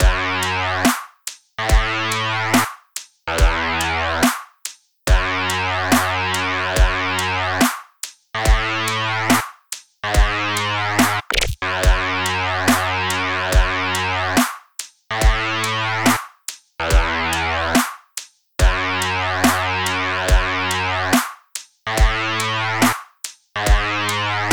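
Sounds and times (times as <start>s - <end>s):
basic dub music: 0.0s - 0.8s, 1.6s - 2.6s, 3.3s - 4.3s, 5.1s - 7.6s, 8.4s - 9.4s, 10.1s - 14.4s, 15.2s - 16.2s, 16.8s - 17.8s, 18.6s - 21.2s, 21.9s - 23.0s, 23.6s - 24.5s.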